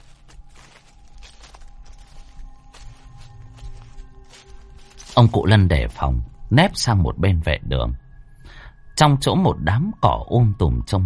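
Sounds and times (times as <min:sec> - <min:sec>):
footsteps crunching on dry leaves: 0:00.0 - 0:06.4
speech: 0:05.2 - 0:08.0, 0:09.0 - 0:11.0.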